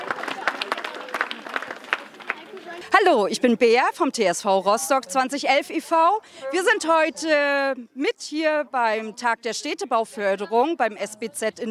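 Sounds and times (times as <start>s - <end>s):
scattered applause for volunteers at a community neighbourhood event: 0.0s - 2.9s
speech: 3.0s - 11.6s.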